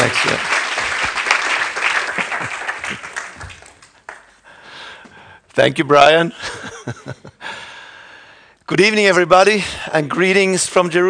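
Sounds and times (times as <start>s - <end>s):
audience applause welcoming a guest speaker: 0.0s - 4.4s
speech: 0.1s - 0.6s, 2.4s - 3.1s, 5.6s - 7.4s, 8.7s - 11.0s.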